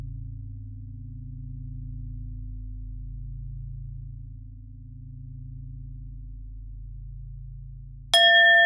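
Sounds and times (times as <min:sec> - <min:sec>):
bells ringing: 0:08.2 - 0:08.6.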